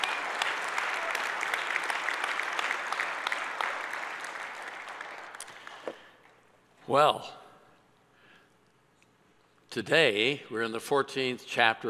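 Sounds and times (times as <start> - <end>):
audience clapping: 0.0 - 6.2
speech: 6.9 - 7.4, 9.8 - 11.8.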